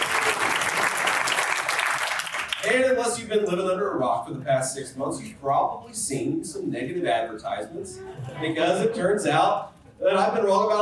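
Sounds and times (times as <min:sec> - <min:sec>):
crowd applauding: 0:00.0 - 0:02.7
speech: 0:02.6 - 0:10.7.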